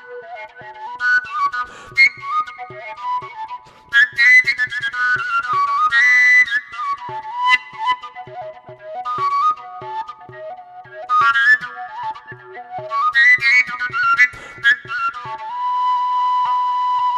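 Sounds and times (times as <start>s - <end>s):
wooden flute case: 0.0s - 17.1s.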